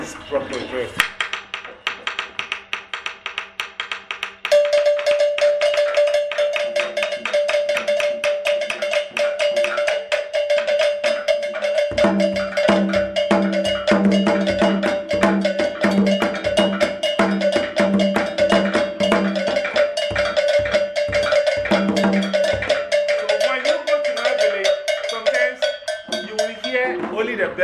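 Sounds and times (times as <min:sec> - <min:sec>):
bells clanging in drumming class practice: 0:00.0 - 0:27.6
speech: 0:00.3 - 0:01.2
deep drum beat: 0:07.0 - 0:27.6.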